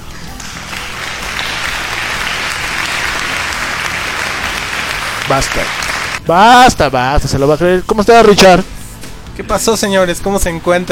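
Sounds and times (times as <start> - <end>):
audience applause: 0.5 - 6.2
speech: 5.3 - 8.8, 9.4 - 10.9.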